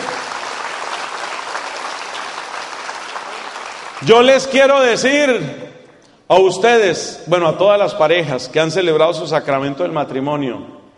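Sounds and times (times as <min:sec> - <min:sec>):
crowd clapping: 0:00.0 - 0:04.9
speech: 0:04.0 - 0:05.6, 0:06.3 - 0:10.8.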